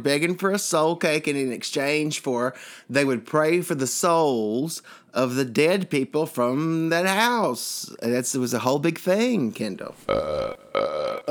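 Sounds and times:
speech: 0:00.0 - 0:11.2
belching: 0:10.0 - 0:11.2.

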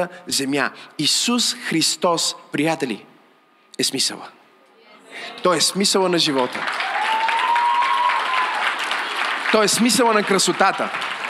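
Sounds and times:
speech: 0:00.0 - 0:03.1, 0:03.8 - 0:04.4, 0:05.1 - 0:07.0, 0:09.5 - 0:11.2
crowd applause: 0:05.4 - 0:11.2.

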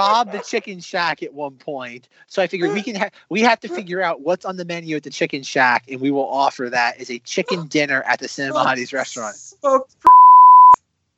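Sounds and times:
laughter: 0:00.0 - 0:01.0, 0:02.6 - 0:04.0, 0:08.5 - 0:09.3
speech: 0:00.0 - 0:10.2
censor bleep tone: 0:10.1 - 0:10.8.

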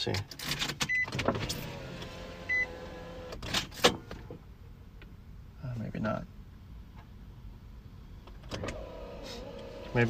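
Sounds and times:
speech: 0:00.0 - 0:01.8, 0:06.0 - 0:06.3
electric car window motoring down: 0:01.2 - 0:03.4, 0:08.5 - 0:10.0.

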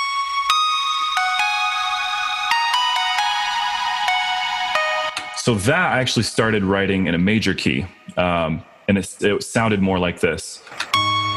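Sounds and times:
synth bell melody line: 0:00.0 - 0:05.6, 0:10.9 - 0:11.3
speech: 0:05.5 - 0:11.3.

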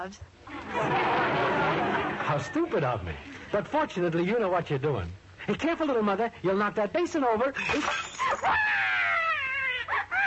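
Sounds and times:
speech: 0:00.0 - 0:08.8
laughter: 0:00.5 - 0:03.7
baby crying after waking: 0:08.4 - 0:10.2.

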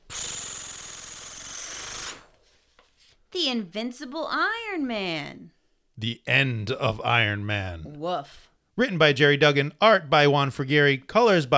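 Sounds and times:
speech: 0:00.1 - 0:00.3, 0:03.4 - 0:11.5
comic book page being turned: 0:02.4 - 0:03.2.

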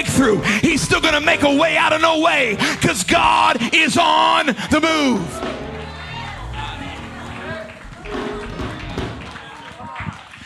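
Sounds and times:
speech: 0:00.0 - 0:05.6
audience cheering: 0:00.6 - 0:10.4.

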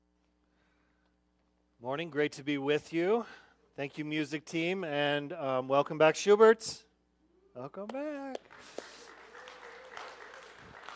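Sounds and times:
speech: 0:01.8 - 0:06.9, 0:07.6 - 0:08.8
audience clapping: 0:07.9 - 0:10.9.

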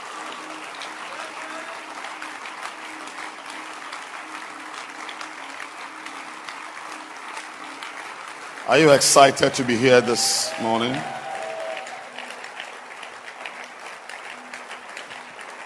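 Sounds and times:
audience clapping: 0:00.0 - 0:15.6
speech: 0:08.7 - 0:11.2.

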